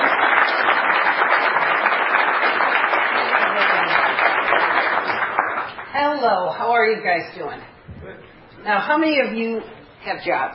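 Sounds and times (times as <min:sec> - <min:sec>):
audience applause welcoming a speaker onto the stage: 0:00.0 - 0:05.9
speech: 0:06.2 - 0:07.7, 0:08.6 - 0:10.5.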